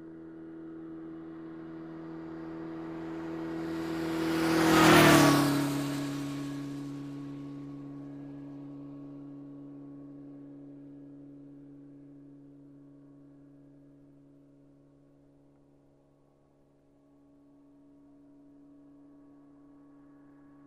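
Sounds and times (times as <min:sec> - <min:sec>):
motorcycle passing by quickly: 0:00.0 - 0:11.8.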